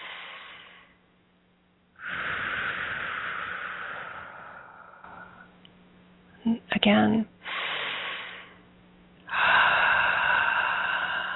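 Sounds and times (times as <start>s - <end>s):
deep breathing in through the nose and out through the mouth: 0.0s - 1.0s, 2.0s - 5.6s, 7.4s - 11.3s
speech: 6.4s - 7.3s.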